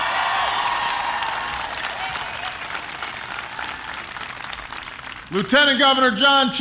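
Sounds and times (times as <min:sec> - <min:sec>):
faint cheering: 0:00.0 - 0:04.2
crowd applauding: 0:00.0 - 0:06.1
speech: 0:05.3 - 0:06.6.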